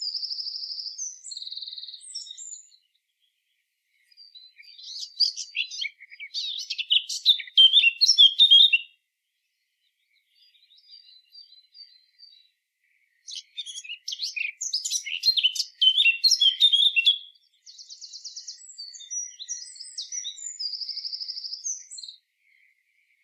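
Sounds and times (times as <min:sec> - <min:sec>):
Eurasian blackcap song: 0:00.0 - 0:23.2.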